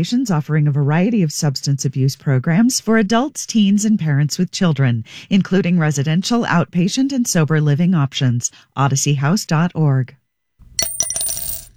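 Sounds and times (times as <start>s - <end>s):
speech: 0.0s - 10.2s
single quarter coin dropping into a jar: 10.7s - 11.7s.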